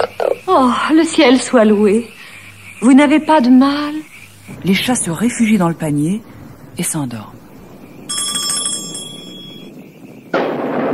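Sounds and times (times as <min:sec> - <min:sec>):
speech: 0:00.5 - 0:02.2, 0:02.8 - 0:07.4
thunderstorm thunder: 0:04.4 - 0:10.9.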